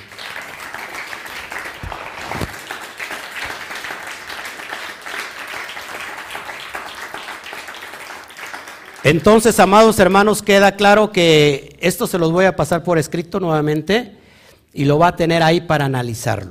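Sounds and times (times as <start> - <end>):
crowd applause: 0.0 - 9.4
speech: 9.1 - 16.4.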